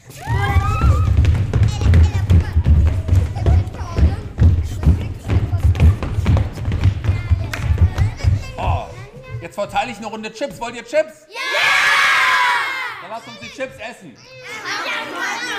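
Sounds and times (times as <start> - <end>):
people dancing with thumping feet: 0.0 - 9.5
speech: 9.9 - 11.7, 13.2 - 15.5.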